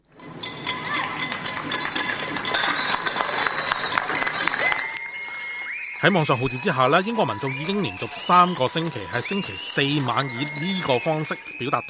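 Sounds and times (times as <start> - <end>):
street crowd clapping and cheering: 0.0 - 11.8
whistles: 2.4 - 11.8
people shouting in the street: 2.6 - 11.8
speech: 6.0 - 11.8.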